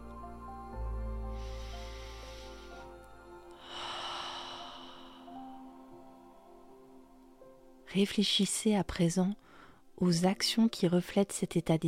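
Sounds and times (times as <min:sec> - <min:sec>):
deep breathing during a guided self-confidence meditation: 0:01.2 - 0:05.9
speech: 0:07.9 - 0:09.4, 0:10.0 - 0:11.8.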